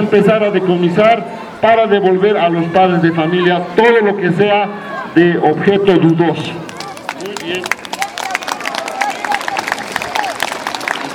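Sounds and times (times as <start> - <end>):
murmur of voices: 0.0 - 11.1
speech: 0.1 - 6.7
audience clapping at a school meeting: 6.7 - 11.1.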